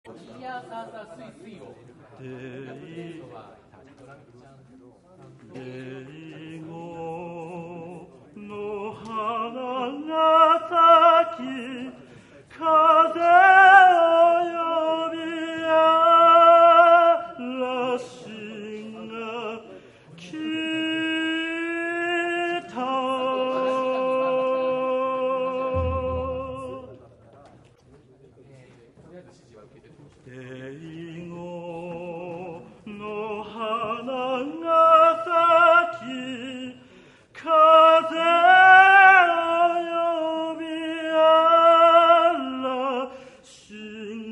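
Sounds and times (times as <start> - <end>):
shimauta solo: 5.5 - 27.0, 30.3 - 44.3.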